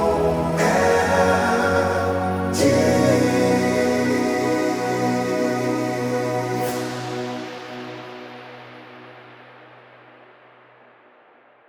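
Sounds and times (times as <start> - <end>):
gospel music: 0.0 - 8.5.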